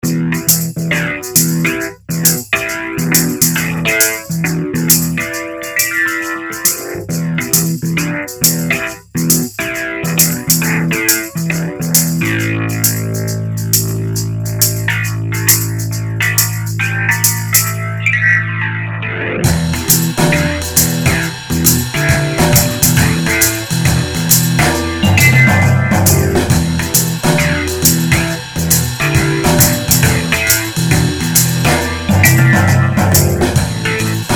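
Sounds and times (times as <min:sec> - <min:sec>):
Rhodes electric piano: 0:00.0 - 0:34.3.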